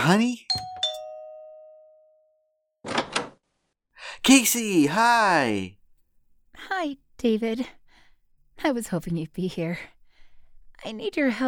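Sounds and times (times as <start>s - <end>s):
speech: 0.0s - 0.7s, 4.2s - 5.8s, 6.6s - 7.8s, 8.6s - 10.0s, 10.8s - 11.4s
doorbell ringing: 0.5s - 2.4s.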